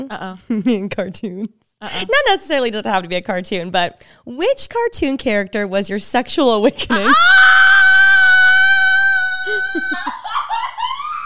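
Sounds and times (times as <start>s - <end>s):
speech: 0.0s - 7.8s
woman screaming: 6.9s - 11.2s.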